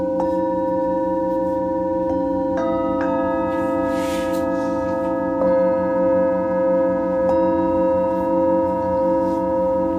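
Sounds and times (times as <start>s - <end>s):
singing bowls ringing: 0.0s - 9.9s
brief soft rustle: 3.5s - 5.2s.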